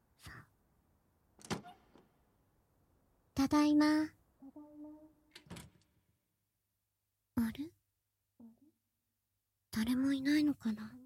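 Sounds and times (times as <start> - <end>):
front door squeaking: 1.4 - 2.0
front door latch rattle: 1.4 - 2.1, 5.3 - 5.9
speech: 3.4 - 4.2, 9.8 - 11.0.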